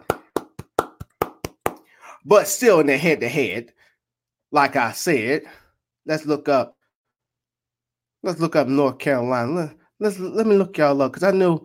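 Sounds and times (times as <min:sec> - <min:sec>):
single person clapping hands: 0:00.0 - 0:02.0
speech: 0:02.2 - 0:03.8, 0:04.5 - 0:06.8, 0:08.2 - 0:11.6.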